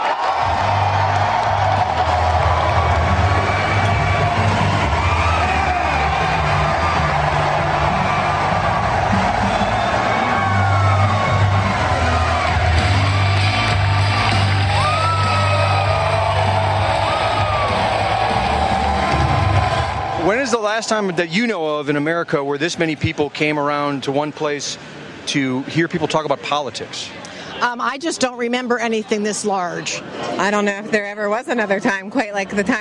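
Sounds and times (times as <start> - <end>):
large crowd cheering a speaker's entrance: 0.0 - 23.0
speech: 20.8 - 32.7.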